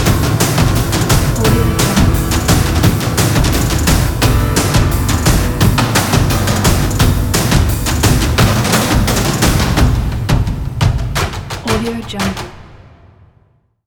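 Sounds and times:
piano: 0.0 - 10.1
drums: 0.0 - 13.3.

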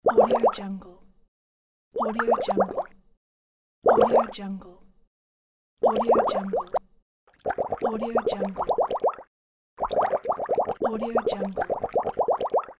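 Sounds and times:
bubbles: 0.0 - 0.6, 2.0 - 2.9, 3.8 - 4.3, 5.8 - 12.7.

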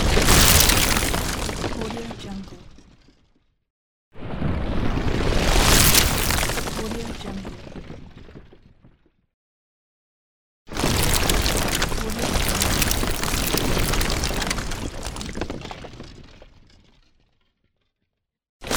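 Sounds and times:
rockfall: 0.0 - 2.1, 5.3 - 8.7, 10.7 - 17.2.

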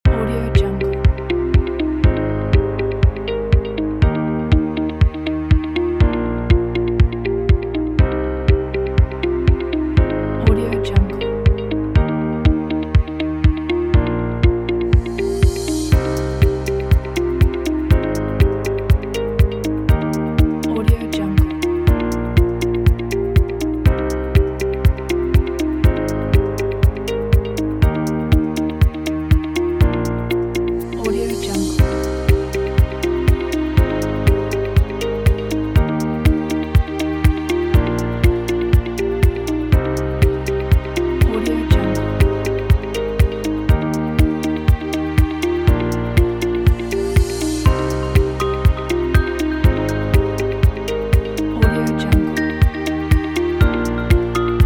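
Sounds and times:
happy inspiring music: 0.0 - 54.6.

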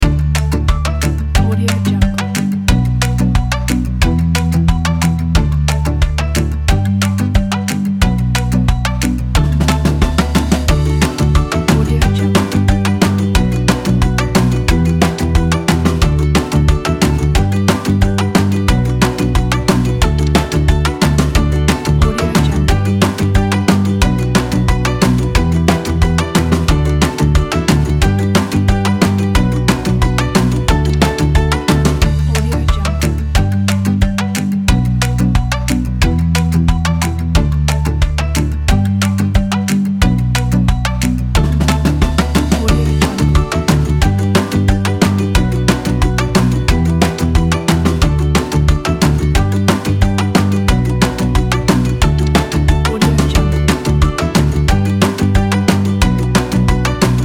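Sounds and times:
cheerful happy music: 0.0 - 57.2.

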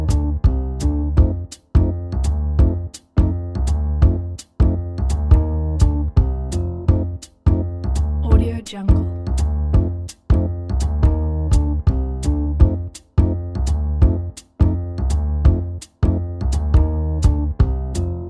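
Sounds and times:
jazz voiceover background music loop: 0.0 - 18.2.

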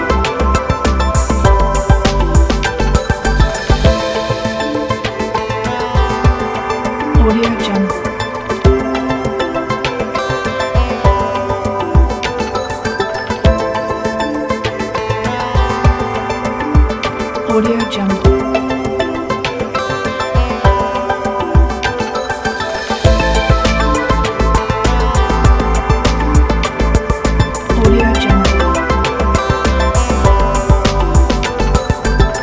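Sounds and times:
ambient electronic documentary music: 0.0 - 32.4.

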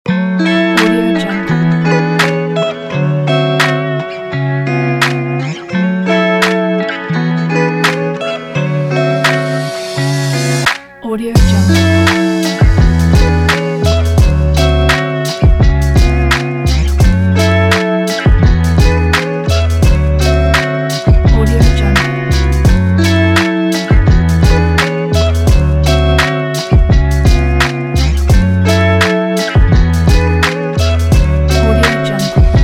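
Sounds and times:
lofi music: 0.2 - 32.6.

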